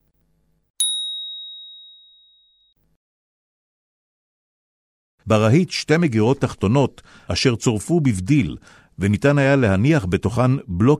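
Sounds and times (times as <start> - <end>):
bell chime: 0.8 - 2.7
speech: 5.3 - 10.9.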